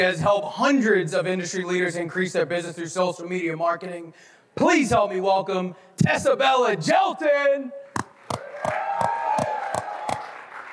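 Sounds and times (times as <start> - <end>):
speech: 0.0 - 7.9
weak audience applause: 8.2 - 10.7.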